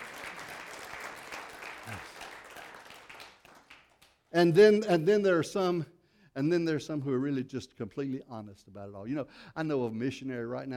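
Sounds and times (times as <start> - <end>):
audience applause: 0.0 - 4.2
speech: 4.3 - 10.7.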